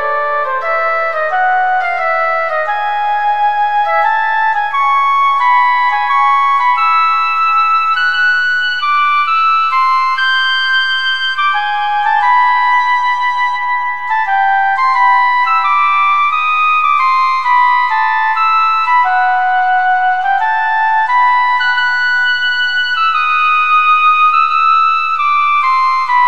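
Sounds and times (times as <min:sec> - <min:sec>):
solo flute sonata movement: 0:00.0 - 0:26.2.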